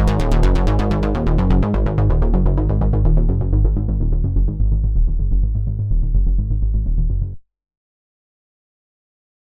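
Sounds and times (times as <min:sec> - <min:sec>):
bass guitar: 0:00.0 - 0:07.4.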